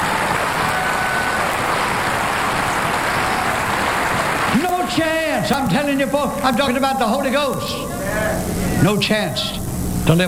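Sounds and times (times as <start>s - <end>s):
audience applauding: 0.0s - 5.6s
speech: 4.9s - 10.2s.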